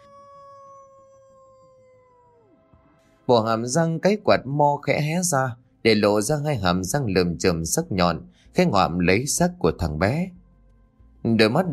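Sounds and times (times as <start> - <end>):
lead dog howling mournfully: 0.0 - 2.8
speech: 3.3 - 10.4, 11.2 - 11.7.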